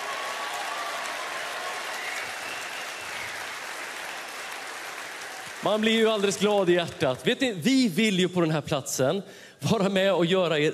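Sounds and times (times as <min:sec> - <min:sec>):
audience applause: 0:00.0 - 0:07.2
speech: 0:05.6 - 0:10.7.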